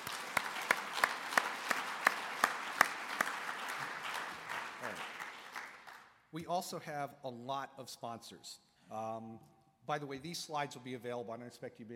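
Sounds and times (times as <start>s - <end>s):
audience applause: 0.0s - 6.1s
speech: 6.3s - 11.9s.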